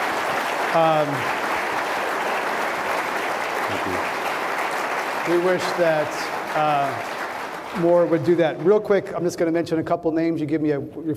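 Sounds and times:
audience applause: 0.0 - 9.1
speech: 0.7 - 1.4, 5.2 - 11.1.

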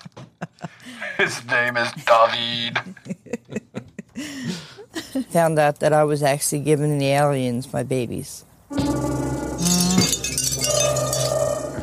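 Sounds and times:
laughter: 0.0 - 5.3
speech: 0.9 - 3.1, 5.2 - 8.5
wind chimes chiming in metallic tones: 9.6 - 11.6.

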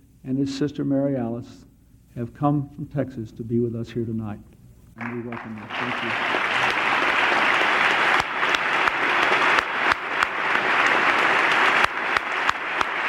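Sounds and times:
speech: 0.2 - 6.5
amplified clapping: 5.0 - 13.0.

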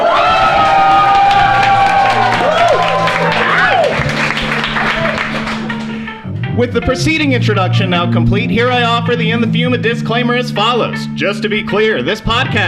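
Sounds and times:
large audience applauding and cheering: 0.0 - 6.2
speech: 6.6 - 12.6.

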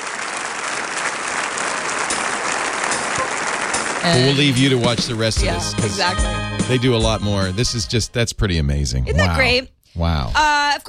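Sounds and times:
large crowd cheering and applauding: 0.0 - 6.8
speech: 4.0 - 10.8.

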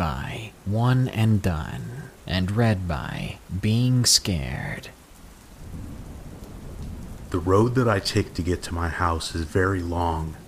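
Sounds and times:
rain: 0.0 - 10.4
speech: 0.7 - 5.0, 7.3 - 10.4
thunderstorm: 5.6 - 9.4.

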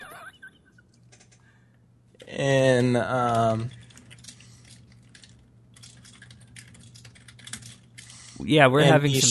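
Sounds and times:
low hum: 0.0 - 9.3
speech: 2.4 - 3.8, 8.4 - 9.3
typing on a computer keyboard: 3.3 - 8.2.

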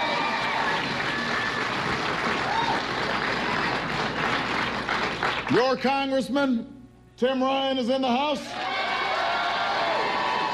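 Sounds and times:
audience applause: 0.0 - 5.6, 8.6 - 10.5
speech: 5.5 - 8.6.

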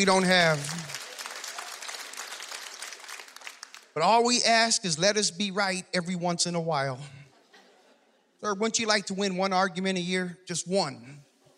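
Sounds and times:
speech: 0.0 - 0.8, 4.0 - 7.2, 8.4 - 11.2
audience clapping in agreement: 0.0 - 4.1.

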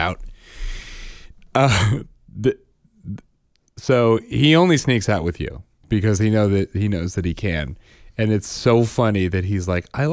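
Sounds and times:
speech: 0.0 - 0.6, 1.6 - 10.1
person clearing throat from a sudden tickle: 1.6 - 3.2.

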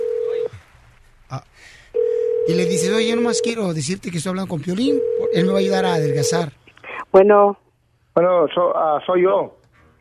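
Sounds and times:
telephone line tone: 0.0 - 0.5, 2.0 - 3.6, 4.9 - 6.4
speech: 1.3 - 7.6, 8.2 - 9.6.

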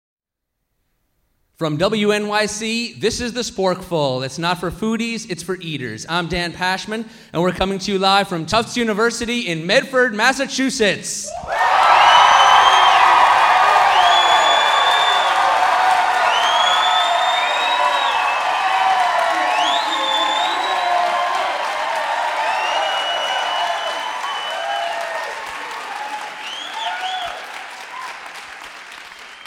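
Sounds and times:
speech: 1.6 - 11.7
live audience at Tufts University in Medford, Massachusetts cheering and applauding: 11.3 - 29.4
audience whistles: 11.9 - 15.5, 16.1 - 21.5, 22.3 - 25.1, 26.1 - 28.3, 29.1 - 29.4.

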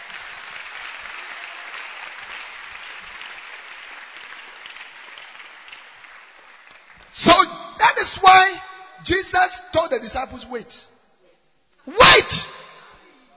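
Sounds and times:
audience clapping in praise: 0.0 - 7.5
speech: 7.2 - 8.4, 9.1 - 10.9, 11.9 - 12.5.

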